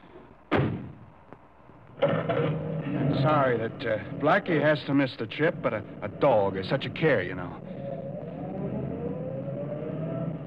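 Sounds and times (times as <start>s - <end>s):
car driving up and turning into a driveway: 2.0s - 10.4s
speech: 3.2s - 7.8s.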